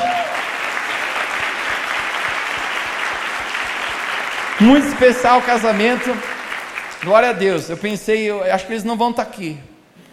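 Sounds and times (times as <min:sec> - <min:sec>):
audience applause: 0:00.0 - 0:07.8
speech: 0:04.6 - 0:06.3, 0:07.0 - 0:09.7.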